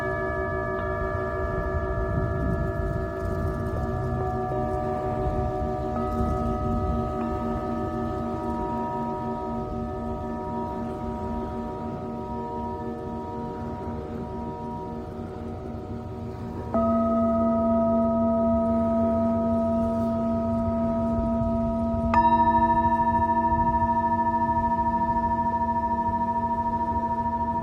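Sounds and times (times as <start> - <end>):
Tibetan singing bowl ringing: 0.0 - 27.6.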